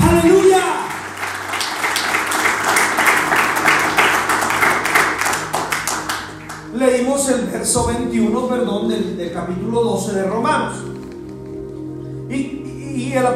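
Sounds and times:
audience applause: 0.0 - 6.7
speech: 7.8 - 10.9, 12.3 - 13.3.

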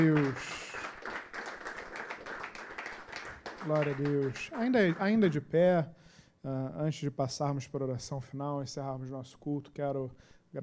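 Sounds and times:
speech: 0.0 - 0.6, 3.6 - 10.6
audience round of applause: 0.0 - 5.5.

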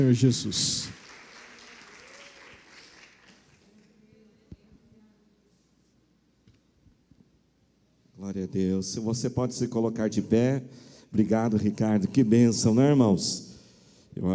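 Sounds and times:
speech: 0.0 - 1.0, 8.3 - 13.5, 14.2 - 14.3
audience applauding: 0.0 - 3.9.

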